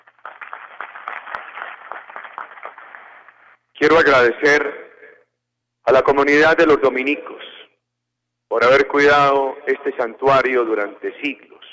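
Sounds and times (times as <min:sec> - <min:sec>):
audience applause: 0:00.0 - 0:03.5
speech: 0:03.8 - 0:04.8, 0:05.9 - 0:07.5, 0:08.5 - 0:11.5.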